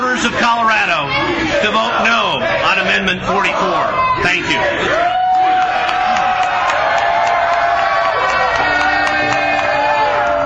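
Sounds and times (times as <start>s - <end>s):
crowd shouting down a press conference: 0.0s - 10.4s
speech: 0.2s - 5.2s
whoops from the crowd: 4.9s - 10.4s.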